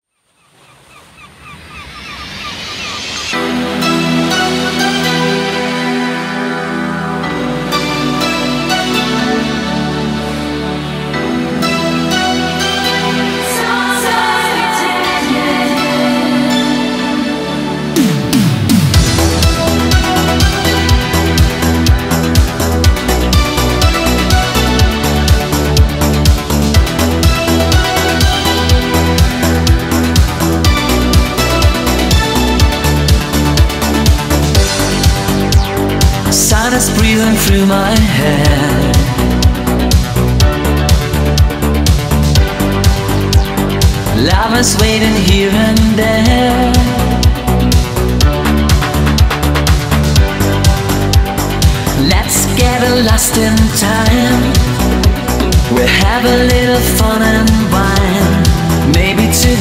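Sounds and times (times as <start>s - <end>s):
Italo disco remix: 2.3s - 59.5s.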